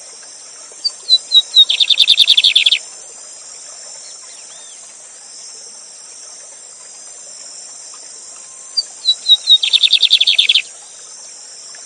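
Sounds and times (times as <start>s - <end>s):
steady high hiss of rushing water: 0.0s - 11.8s
lined seedeater whistles and buzzy trill: 0.8s - 2.8s, 4.0s - 5.4s, 8.4s - 11.0s.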